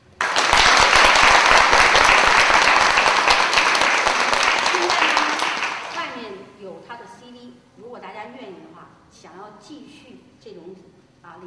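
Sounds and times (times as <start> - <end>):
crowd applause: 0.0 - 6.2.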